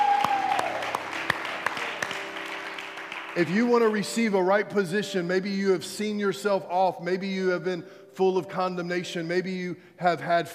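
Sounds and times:
church congregation clapping during a service: 0.0s - 4.5s
speech: 3.4s - 10.5s.

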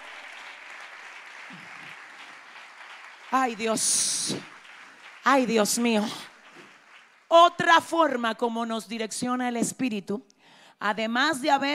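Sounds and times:
loud audience applause: 0.0s - 7.3s
speech: 3.3s - 4.5s, 5.3s - 6.3s, 7.3s - 11.7s.

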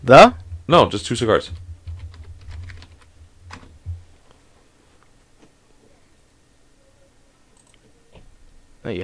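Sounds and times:
speech: 0.0s - 1.6s, 8.9s - 9.0s
computer keyboard typing as a search is entered: 1.8s - 3.7s.

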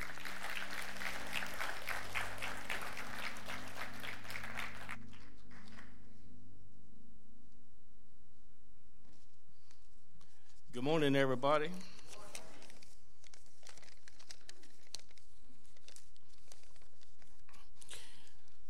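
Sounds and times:
audience applause welcoming a speaker at a church service: 0.0s - 5.9s
speech: 10.8s - 11.9s.

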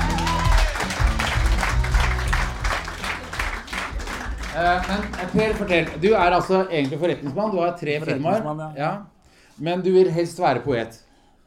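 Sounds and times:
audience applause: 0.0s - 6.6s
music: 0.0s - 9.1s
speech: 4.6s - 11.4s.

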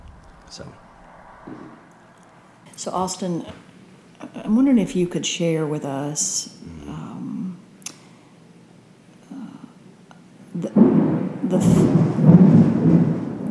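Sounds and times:
thunder rumbling during a storm: 0.0s - 3.2s, 4.3s - 5.2s, 10.6s - 13.4s
speech: 0.5s - 0.8s, 1.5s - 1.8s, 2.6s - 7.0s.

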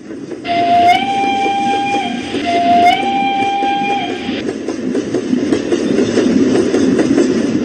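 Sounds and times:
train running with failing brakes: 0.0s - 7.6s
long high shrill tones: 0.5s - 4.4s.

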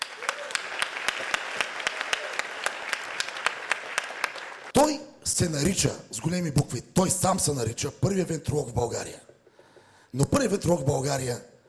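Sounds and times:
audience applause at a comedy roast: 0.0s - 4.7s
speech: 4.9s - 9.3s, 10.1s - 11.5s.

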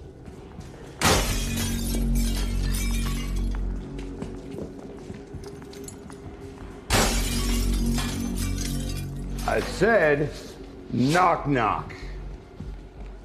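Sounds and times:
glass windows smashing from a head: 1.0s - 3.5s, 6.9s - 9.7s
debris scattering: 1.0s - 3.6s, 6.9s - 9.8s
speech: 9.5s - 12.0s.

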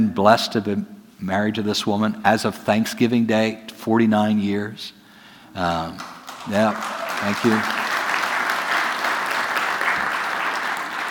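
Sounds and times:
speech: 0.0s - 7.8s
audience applause: 6.0s - 11.0s.

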